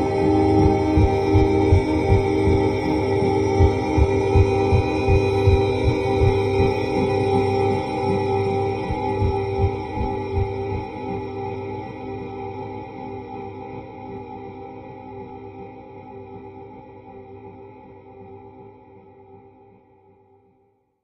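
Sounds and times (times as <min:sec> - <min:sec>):
musical heartbeat: 0:00.0 - 0:08.2, 0:08.8 - 0:11.2.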